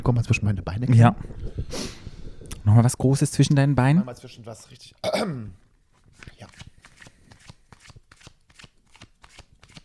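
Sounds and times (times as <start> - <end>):
speech: 0.0 - 2.0, 2.6 - 5.6
deck of playing cards being shuffled: 6.0 - 9.8.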